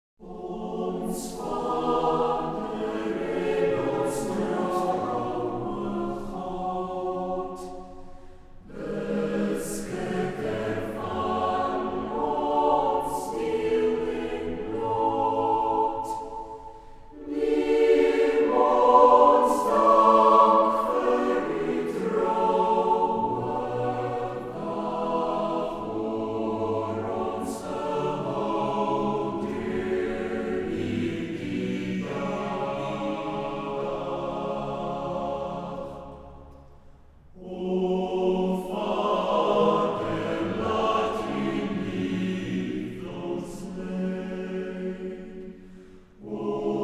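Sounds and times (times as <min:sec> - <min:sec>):
Afrikaans choir music in concert for evening prayer: 0:00.2 - 0:46.8.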